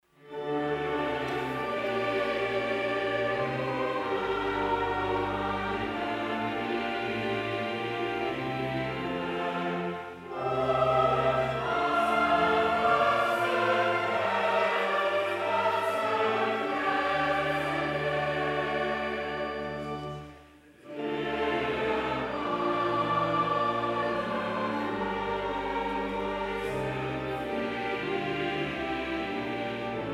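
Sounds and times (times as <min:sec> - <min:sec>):
choir singing: 0:00.2 - 0:30.1.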